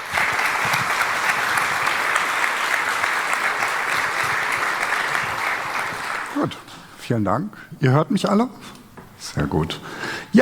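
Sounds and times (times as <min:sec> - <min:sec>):
audience applause: 0:00.0 - 0:06.7
speech: 0:06.4 - 0:10.4.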